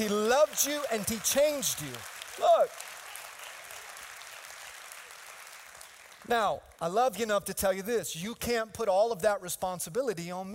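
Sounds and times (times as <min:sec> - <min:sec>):
speech: 0:00.0 - 0:02.9, 0:06.3 - 0:10.5
large crowd applauding: 0:00.0 - 0:06.9.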